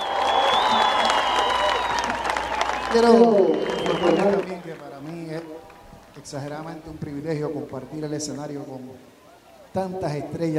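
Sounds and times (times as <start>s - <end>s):
audience voices cheering: 0.0s - 6.6s
stage audience clapping: 0.0s - 6.8s
speech: 2.9s - 9.1s, 9.7s - 10.5s.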